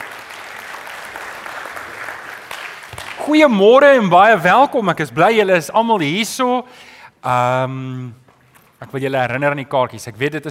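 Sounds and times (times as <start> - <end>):
audience clapping hands: 0.0 - 3.6
speech: 3.3 - 8.2, 8.8 - 10.4.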